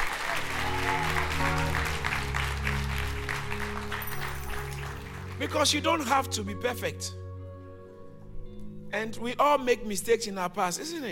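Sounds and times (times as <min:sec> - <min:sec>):
audience clapping: 0:00.0 - 0:06.1
sustained low musical tones: 0:00.0 - 0:11.1
speech: 0:05.4 - 0:07.2, 0:09.0 - 0:11.1.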